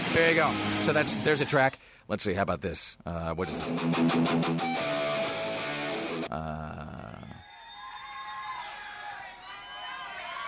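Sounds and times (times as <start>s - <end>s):
speech: 0.2s - 5.0s, 6.3s - 6.8s
cheering: 7.4s - 10.4s
audience applause: 7.6s - 10.4s.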